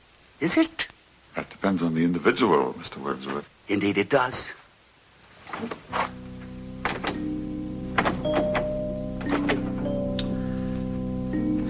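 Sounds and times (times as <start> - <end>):
speech: 0.4 - 4.6, 5.5 - 6.2
low humming drone: 6.0 - 11.6
door being locked: 6.8 - 7.3, 7.9 - 10.0.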